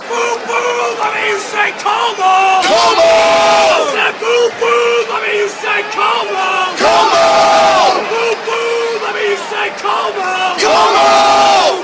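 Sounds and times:
football crowd chanting: 0.0 - 11.8.

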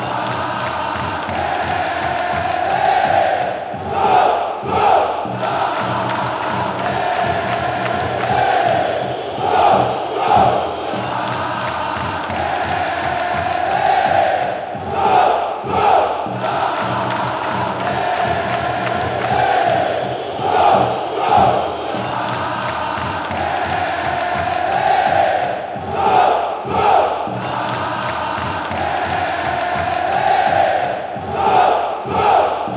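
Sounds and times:
football fans chanting: 0.0 - 32.7.

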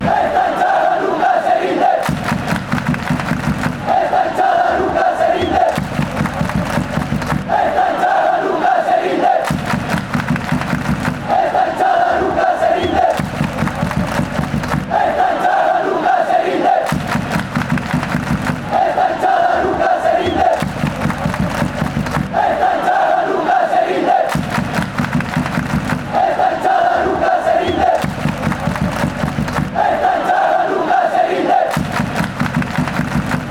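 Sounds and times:
crowd chanting: 0.0 - 33.4.

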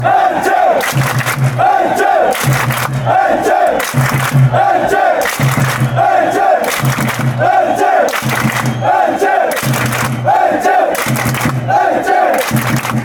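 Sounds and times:
fans chanting: 0.0 - 13.0
people clapping: 0.0 - 13.0.

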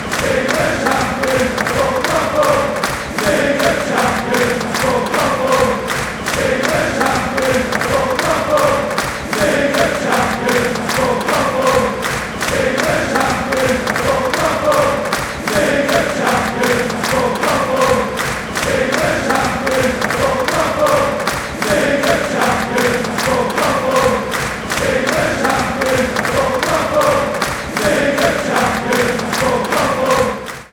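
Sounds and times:
fans chanting: 0.0 - 30.7.

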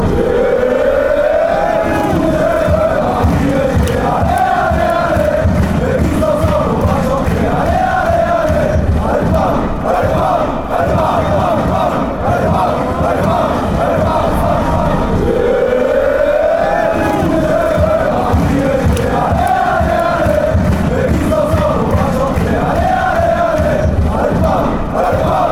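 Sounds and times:
fans chanting together: 0.0 - 25.4.

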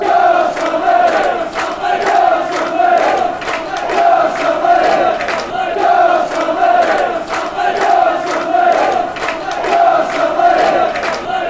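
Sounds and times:
fans chanting: 0.0 - 11.4.

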